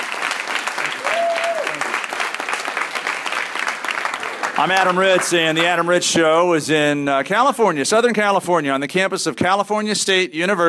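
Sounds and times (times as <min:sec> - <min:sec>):
audience round of applause: 0:00.0 - 0:06.1
speech: 0:04.6 - 0:10.6.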